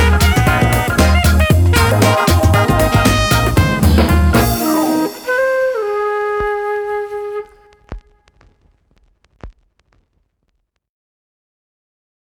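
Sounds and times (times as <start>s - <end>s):
flute: 0.0s - 8.4s.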